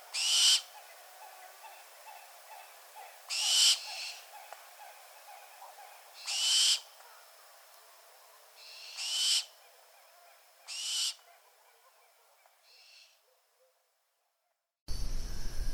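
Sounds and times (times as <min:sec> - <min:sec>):
barn owl call: 0:00.1 - 0:07.1, 0:08.6 - 0:13.4.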